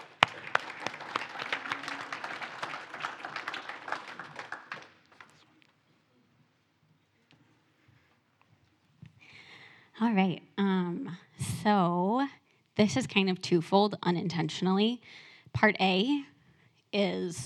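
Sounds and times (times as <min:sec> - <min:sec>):
audience applause: 0:00.0 - 0:05.4
speech: 0:10.0 - 0:16.3, 0:16.9 - 0:17.4.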